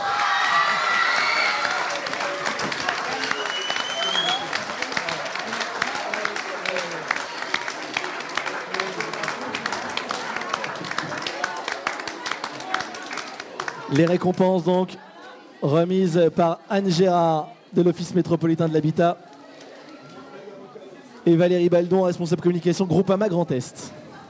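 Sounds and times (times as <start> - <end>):
cheers and whistles: 0.0 - 4.6
crowd applauding: 0.0 - 14.7
speech: 14.0 - 15.0, 15.6 - 19.3, 21.3 - 24.0.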